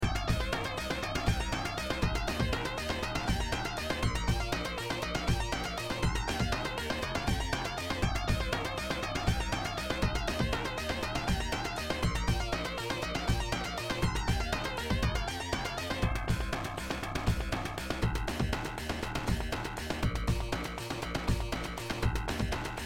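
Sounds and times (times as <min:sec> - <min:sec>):
bass lead sound over a beat: 0:00.0 - 0:22.8.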